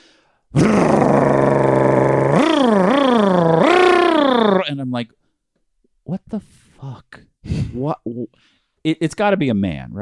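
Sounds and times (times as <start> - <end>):
man imitating a loud modified car muffler: 0.6 - 4.7
speech: 8.3 - 10.0.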